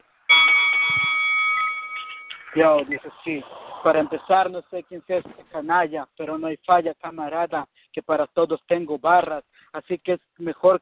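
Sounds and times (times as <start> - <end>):
bell ringing: 0.3 - 3.1
speech: 2.6 - 10.8.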